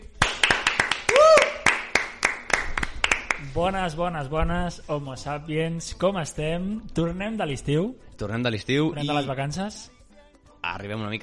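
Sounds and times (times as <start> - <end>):
audience applause: 0.2 - 3.4
speech: 3.5 - 10.0, 10.7 - 11.2.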